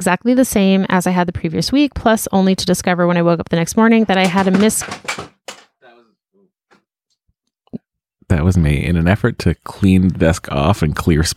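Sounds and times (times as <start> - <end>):
speech: 0.0 - 5.4, 8.3 - 11.3
unlit candle knocked over clattering on a desk: 4.0 - 5.8.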